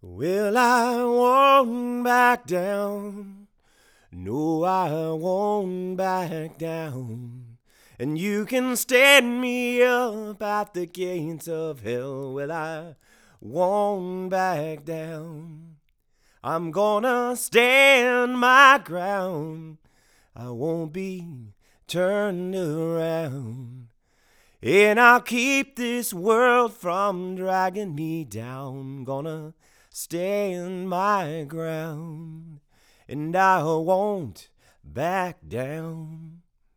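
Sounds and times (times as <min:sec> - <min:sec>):
vocals: 0:00.0 - 0:36.7.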